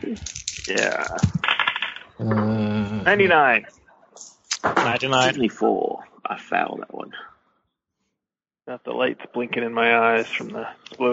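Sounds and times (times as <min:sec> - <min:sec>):
speech: 0:00.1 - 0:01.4, 0:02.2 - 0:07.3, 0:08.7 - 0:11.1
dice clattering across a hard surface: 0:00.1 - 0:02.0
person groaning: 0:02.2 - 0:03.3.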